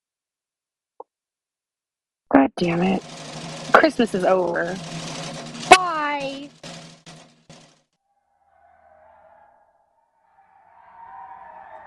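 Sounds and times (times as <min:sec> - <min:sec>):
speech: 0:02.3 - 0:03.1, 0:03.7 - 0:05.0
car engine drone on snowy mountain roads in a video game: 0:02.6 - 0:09.5
crunching impacts of a car in a video game: 0:03.0 - 0:07.8.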